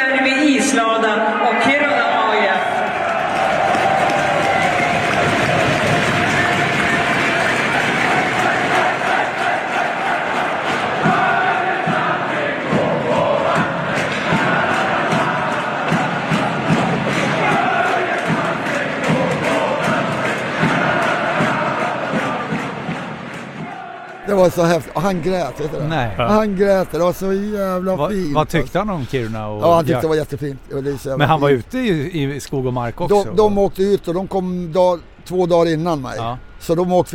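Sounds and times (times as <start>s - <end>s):
crowd voices: 0.2s - 35.2s
large arena crowd cheering and applauding: 1.4s - 29.3s
speech: 24.5s - 37.1s.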